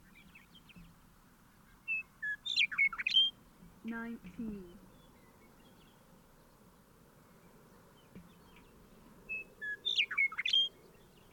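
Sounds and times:
bird song: 0:00.0 - 0:11.3
speech: 0:03.8 - 0:04.9.

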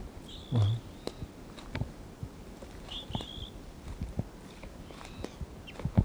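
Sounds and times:
wild birds chirping: 0:00.2 - 0:01.7, 0:02.7 - 0:05.9.

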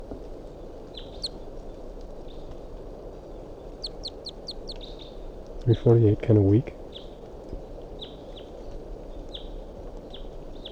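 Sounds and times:
wild bird calls: 0:03.6 - 0:05.2
speech: 0:05.7 - 0:06.8.

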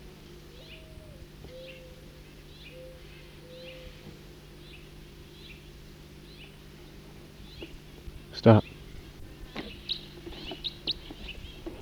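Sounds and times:
bird flight call: 0:00.0 - 0:11.8
speech: 0:08.4 - 0:08.7.

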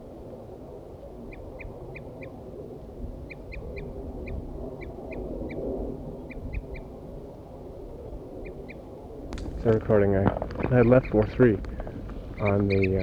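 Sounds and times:
low rumble: 0:09.3 - 0:13.0
wild birds calling: 0:09.4 - 0:13.0
speech: 0:09.6 - 0:11.7, 0:12.4 - 0:13.0.

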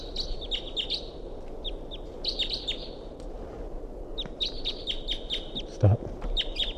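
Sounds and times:
wild bird calling in high thin chirps: 0:00.0 - 0:03.0, 0:04.2 - 0:06.7.

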